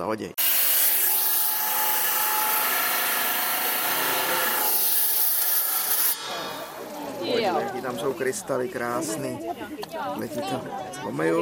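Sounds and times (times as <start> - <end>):
speech: 0.0 - 0.5, 7.3 - 11.3
saw grinding through stone: 0.4 - 7.6.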